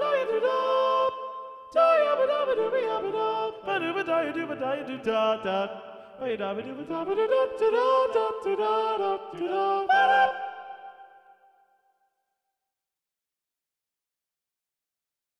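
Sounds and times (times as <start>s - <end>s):
soprano singing: 0.0s - 11.0s.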